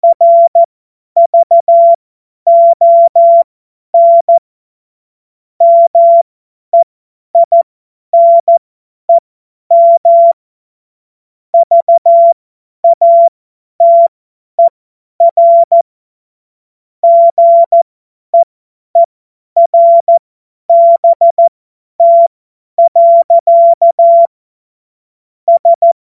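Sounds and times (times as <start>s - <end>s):
CW Morse code beeps: 0.0s - 4.4s, 5.6s - 6.2s, 7.4s - 7.6s, 8.2s - 8.6s, 9.7s - 10.4s, 11.6s - 15.8s, 17.0s - 17.8s, 18.4s - 24.3s, 25.5s - 26.0s.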